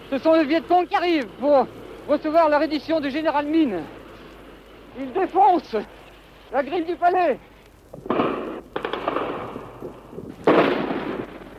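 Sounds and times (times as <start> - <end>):
speech: 0.1 - 4.0, 5.0 - 8.2
machine gun fire on the palace during the Viet Cong takeover: 8.1 - 9.8, 10.4 - 11.5.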